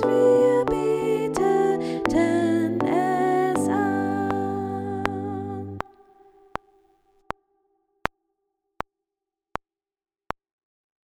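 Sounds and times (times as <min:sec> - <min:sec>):
soprano voice: 0:00.0 - 0:06.0.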